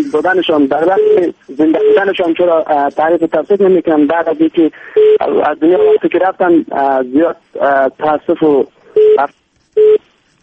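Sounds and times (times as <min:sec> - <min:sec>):
speech: 0:00.0 - 0:10.0
telephone busy signal after a call line drops: 0:00.8 - 0:02.1, 0:05.0 - 0:06.1, 0:09.0 - 0:10.0.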